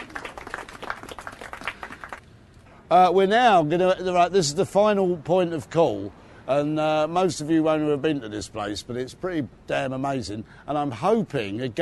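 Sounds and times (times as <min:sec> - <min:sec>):
audience applause: 0:00.0 - 0:02.2
speech: 0:02.9 - 0:11.8.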